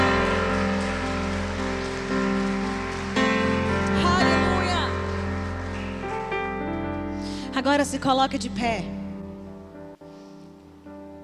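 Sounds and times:
audience applauding: 0.0s - 7.2s
speech: 7.6s - 9.0s.

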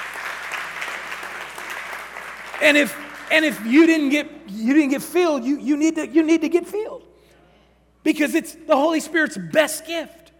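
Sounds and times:
audience clapping in praise: 0.0s - 4.2s
speech: 2.6s - 7.1s, 8.0s - 10.2s.

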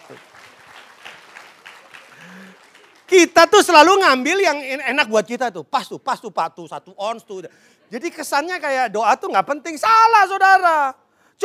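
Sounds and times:
audience applause: 0.0s - 3.2s
speech: 0.1s - 0.3s, 2.2s - 11.4s.

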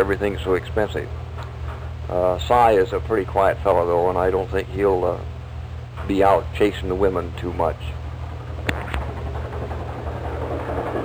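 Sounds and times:
speech: 0.0s - 1.2s, 2.1s - 5.3s, 6.0s - 8.0s
helicopter flying overhead: 0.0s - 11.0s.

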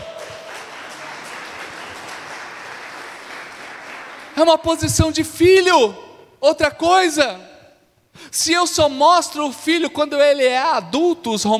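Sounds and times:
audience applause: 0.0s - 4.4s
speech: 4.4s - 7.5s, 8.2s - 11.5s.

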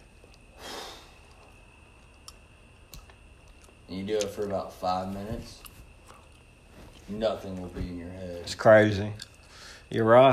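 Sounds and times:
deep breath: 0.5s - 1.2s, 9.4s - 9.9s
speech: 3.9s - 5.7s, 7.1s - 9.3s, 9.9s - 10.3s.

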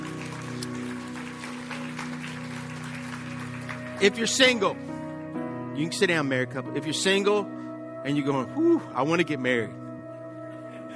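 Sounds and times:
crowd applauding: 0.0s - 4.8s
speech: 4.0s - 4.9s, 5.8s - 9.8s.

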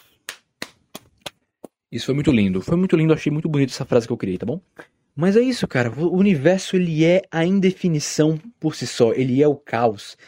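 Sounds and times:
clapping: 0.0s - 1.4s
speech: 1.9s - 10.2s.

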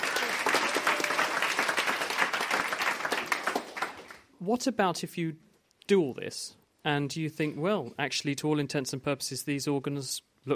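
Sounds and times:
audience round of applause: 0.0s - 4.3s
speech: 4.4s - 10.5s.

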